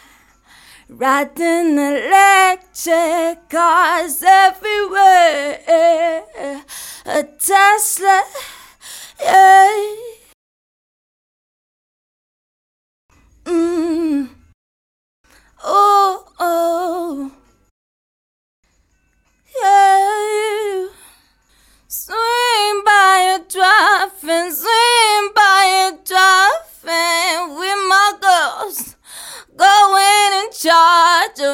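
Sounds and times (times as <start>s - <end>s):
woman singing pop R and B: 0.6s - 10.3s, 15.6s - 17.4s, 19.5s - 21.1s, 21.9s - 31.5s.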